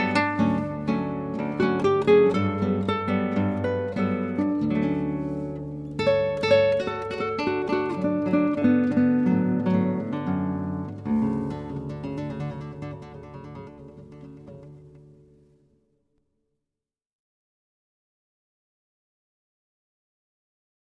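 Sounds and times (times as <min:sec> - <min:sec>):
guitar: 0:00.0 - 0:16.2.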